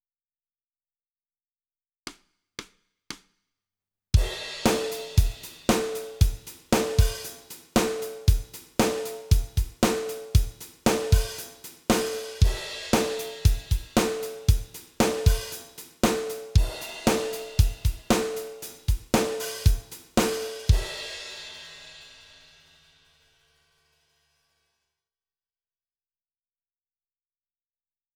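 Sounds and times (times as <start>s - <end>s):
drums: 4.2s - 24.0s.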